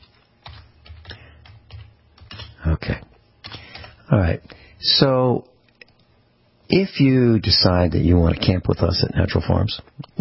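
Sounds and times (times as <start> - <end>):
keyboard typing: 0.0 - 2.7, 3.4 - 4.0
speech: 4.1 - 5.5, 6.7 - 10.1.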